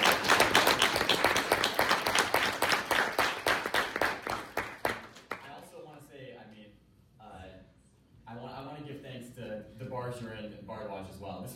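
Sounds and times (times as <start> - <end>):
audience applause: 0.0 - 5.5.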